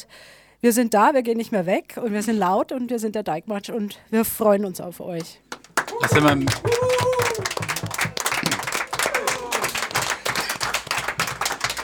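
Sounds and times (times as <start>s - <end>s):
speech: 0.0s - 7.6s
audience applause: 5.5s - 11.8s.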